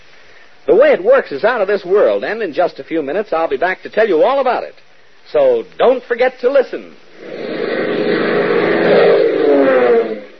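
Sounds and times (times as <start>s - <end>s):
speech: 0.8s - 7.5s
DC-4 transport plane engines roaring: 7.2s - 10.3s.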